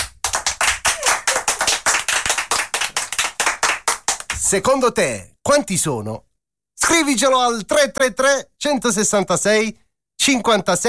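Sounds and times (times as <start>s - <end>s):
crowd applauding: 0.0s - 4.4s
speech: 4.5s - 6.3s, 6.9s - 10.8s.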